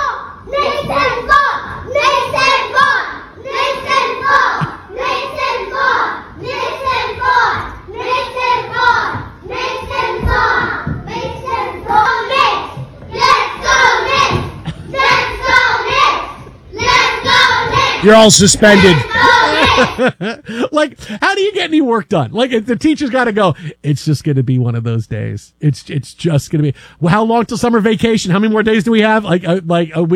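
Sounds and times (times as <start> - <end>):
children chanting and cheering in classroom: 0.0 - 20.1
laughter: 14.6 - 15.2, 18.4 - 20.8
speech: 18.0 - 30.1.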